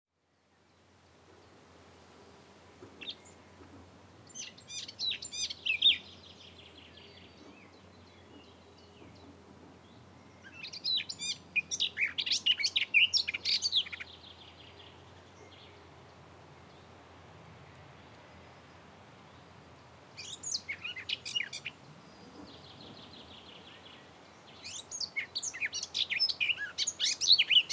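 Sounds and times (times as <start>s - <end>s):
Eurasian blackcap warbling song: 4.2s - 6.5s, 10.4s - 14.4s, 20.2s - 21.8s, 22.5s - 27.7s.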